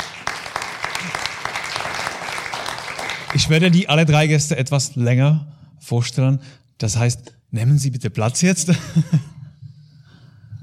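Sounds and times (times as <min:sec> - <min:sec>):
audience applause: 0:00.0 - 0:03.8
speech: 0:03.3 - 0:09.3
laughter: 0:08.7 - 0:09.6.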